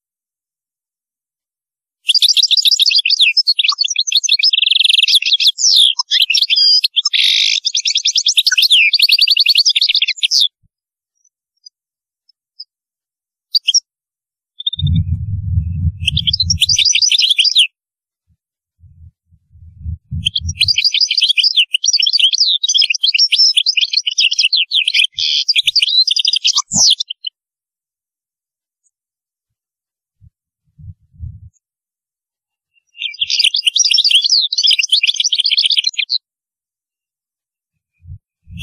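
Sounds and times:
European goldfinch singing: 0:02.1 - 0:10.5, 0:14.6 - 0:17.7, 0:18.9 - 0:27.3, 0:32.8 - 0:36.2
low thumping noises: 0:14.8 - 0:16.6, 0:18.8 - 0:20.7, 0:30.8 - 0:31.5.

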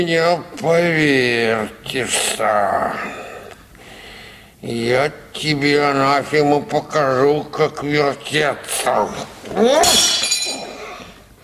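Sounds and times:
speech: 0:00.0 - 0:03.2, 0:04.6 - 0:10.3
glass carafe breaking: 0:09.8 - 0:10.8.

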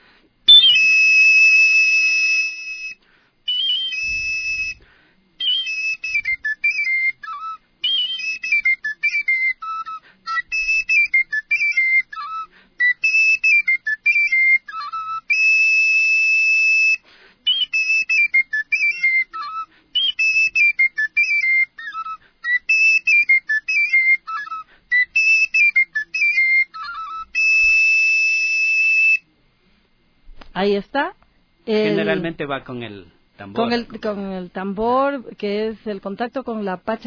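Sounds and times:
traditional Ecuadorian ruku tone from the Chillos valleys on a shrill whistle-like instrument: 0:00.5 - 0:29.3
speech: 0:30.6 - 0:37.0.

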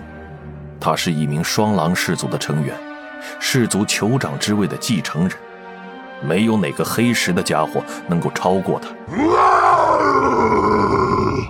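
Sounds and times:
speech: 0:00.8 - 0:05.5, 0:06.2 - 0:09.6
war-cry-like roar: 0:09.1 - 0:11.4.

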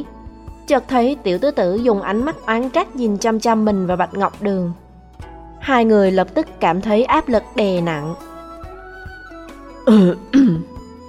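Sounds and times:
speech: 0:00.0 - 0:04.8, 0:05.6 - 0:08.3, 0:09.8 - 0:10.7
man coughing: 0:09.9 - 0:10.8.

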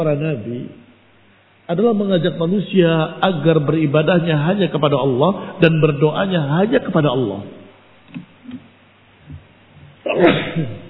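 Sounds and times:
speech: 0:00.0 - 0:00.8, 0:01.7 - 0:08.6, 0:10.1 - 0:10.8
person sneezing: 0:10.0 - 0:10.8.

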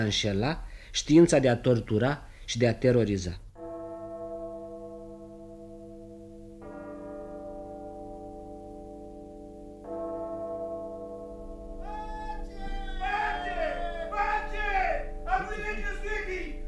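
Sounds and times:
speech: 0:00.0 - 0:03.4
signal or alarm bells ringing: 0:03.6 - 0:16.6.

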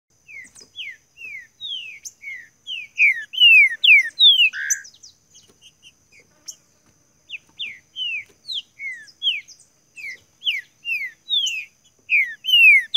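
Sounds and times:
green-winged saltator song of clear downslurred whistles: 0:00.2 - 0:04.9, 0:07.7 - 0:12.9.

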